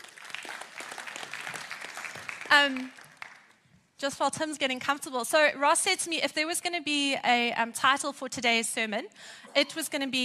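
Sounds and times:
audience applause: 0:00.0 - 0:03.5
speech: 0:02.5 - 0:03.0, 0:04.0 - 0:10.2.

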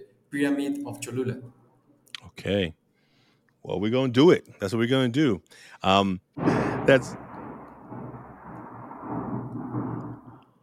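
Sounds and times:
speech: 0:00.3 - 0:01.6, 0:02.3 - 0:02.8, 0:03.6 - 0:07.2
thunder rumbling: 0:06.4 - 0:10.6.

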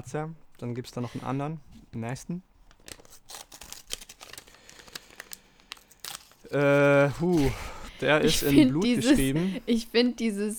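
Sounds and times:
speech: 0:00.0 - 0:02.5, 0:06.5 - 0:10.5
paper or material tearing and crinkling as sound effects: 0:02.8 - 0:07.8
laughter: 0:08.0 - 0:09.8.

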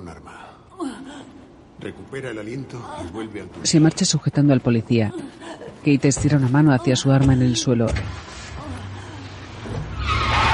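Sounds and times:
speech: 0:01.8 - 0:08.5
patrol car reversing out of a warehouse: 0:09.6 - 0:10.5.

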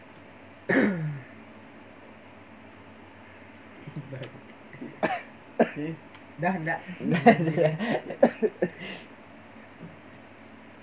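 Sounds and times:
low hum: 0:00.0 - 0:10.8
raspy coughing: 0:00.7 - 0:01.4, 0:04.8 - 0:06.0, 0:07.5 - 0:09.0
speech: 0:05.8 - 0:09.1
laughter: 0:06.8 - 0:08.6.

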